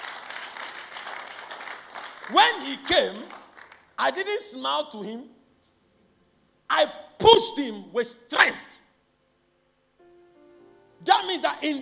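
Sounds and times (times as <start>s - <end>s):
audience clapping: 0.0s - 4.0s
speech: 2.3s - 3.4s, 4.0s - 5.4s, 6.7s - 8.9s, 11.0s - 11.8s.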